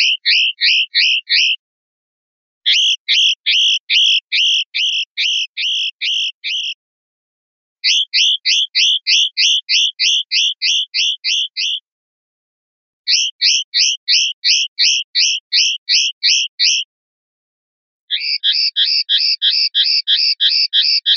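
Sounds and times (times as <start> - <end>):
linnet calling: 0.0 - 1.6, 2.7 - 6.8, 7.8 - 11.8, 13.1 - 16.9, 18.1 - 21.1.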